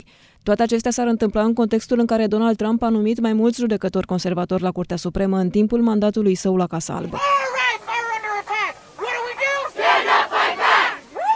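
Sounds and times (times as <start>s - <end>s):
speech: 0.0s - 7.6s
crowd of protesters outside a court: 7.2s - 11.3s.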